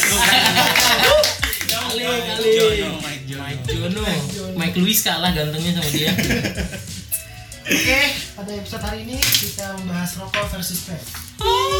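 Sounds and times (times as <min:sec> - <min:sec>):
small crowd clapping: 0:00.0 - 0:03.2
laughter: 0:00.0 - 0:04.3, 0:05.8 - 0:08.2
voices chattering and cheering: 0:00.0 - 0:06.3, 0:11.4 - 0:11.7
speech: 0:00.1 - 0:00.6, 0:02.0 - 0:06.9, 0:07.7 - 0:11.7.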